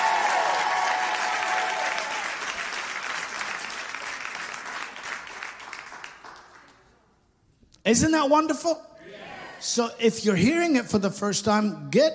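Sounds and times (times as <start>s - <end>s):
audience applauding: 0.0s - 6.8s
speech: 7.9s - 8.9s, 9.6s - 12.1s.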